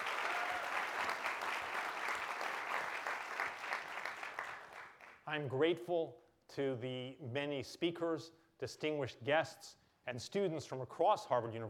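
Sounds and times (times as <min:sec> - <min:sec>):
audience applause: 0:00.0 - 0:05.2
speech: 0:05.3 - 0:11.6.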